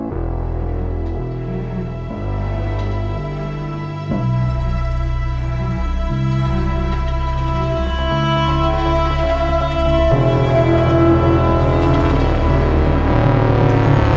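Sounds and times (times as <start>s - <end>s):
heroic action suspense music one-shot: 0.1s - 14.1s.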